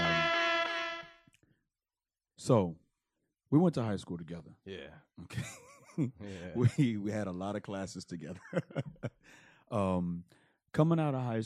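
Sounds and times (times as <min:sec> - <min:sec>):
air horn sound effect: 0:00.0 - 0:01.2
speech: 0:02.4 - 0:02.8, 0:03.5 - 0:11.4
laughter: 0:05.3 - 0:07.1, 0:08.2 - 0:09.2.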